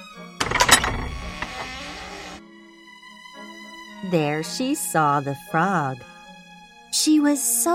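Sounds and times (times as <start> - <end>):
door being shut: 0.4 - 2.4
speech: 4.0 - 6.1, 7.0 - 7.7.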